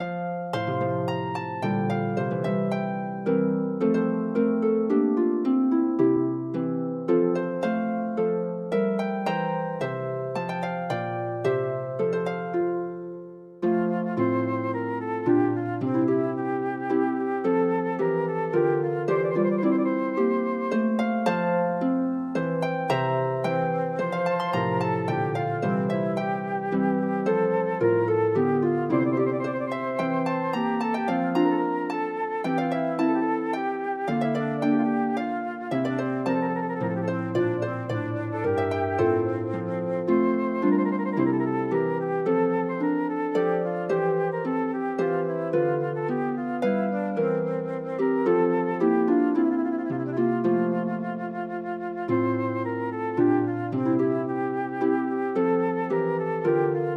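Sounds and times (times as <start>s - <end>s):
flute: 0.0s - 56.9s
harp: 0.0s - 56.9s.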